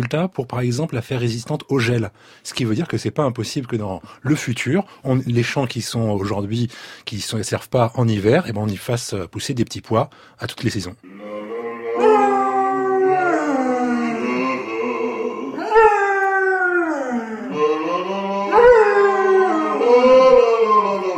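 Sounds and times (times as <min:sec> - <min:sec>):
speech: 0:00.1 - 0:11.4
dog howling: 0:11.0 - 0:21.1.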